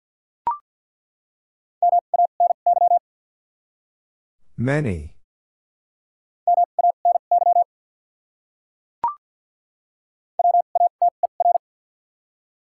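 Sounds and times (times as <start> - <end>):
Morse code beeps: 1.8 - 3.0, 6.5 - 7.7, 10.4 - 11.6
speech: 4.6 - 5.2.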